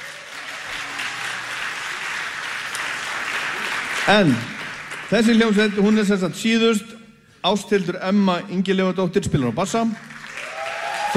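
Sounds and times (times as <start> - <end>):
audience applause for a still-active band: 0.0 - 6.1, 9.9 - 11.1
speech: 4.0 - 10.1.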